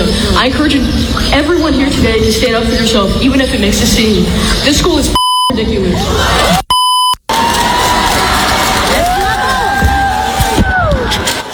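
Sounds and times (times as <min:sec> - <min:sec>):
speech: 0:00.4 - 0:06.6
audience cheering: 0:07.3 - 0:11.5.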